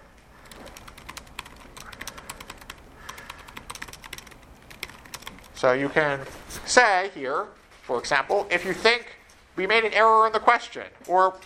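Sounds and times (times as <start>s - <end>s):
steady low noise: 0.0s - 11.4s
rapid typing on a computer keyboard entering a comment: 0.4s - 5.6s
speech: 5.6s - 11.4s.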